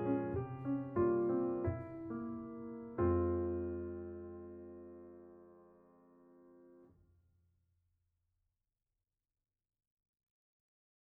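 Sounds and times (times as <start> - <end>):
piano: 0.0 - 6.9.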